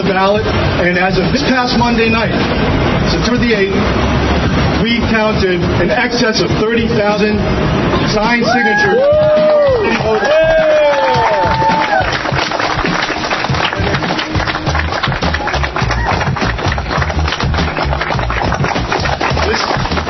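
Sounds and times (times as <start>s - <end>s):
speech: 0.1s - 4.2s, 4.9s - 10.5s
audience applause: 9.5s - 20.0s.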